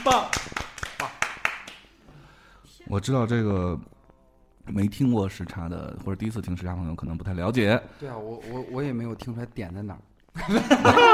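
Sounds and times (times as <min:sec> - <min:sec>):
speech: 0:00.0 - 0:00.4, 0:02.9 - 0:03.9, 0:04.7 - 0:11.1
person clapping: 0:00.0 - 0:01.9
laughter: 0:10.4 - 0:11.1.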